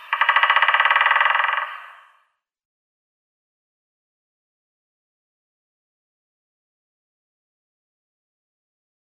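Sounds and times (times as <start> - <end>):
White-backed Woodpecker drumming: 0.0 - 2.2.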